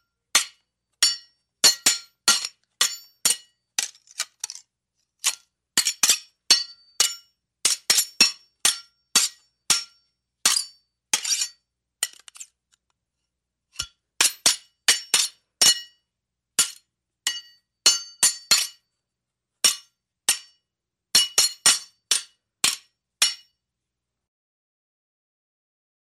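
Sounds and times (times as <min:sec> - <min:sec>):
swords clashing in a duel between two fighters: 0:00.4 - 0:03.9, 0:05.2 - 0:12.5, 0:13.8 - 0:16.0, 0:16.6 - 0:18.8, 0:19.6 - 0:20.6, 0:21.2 - 0:23.5.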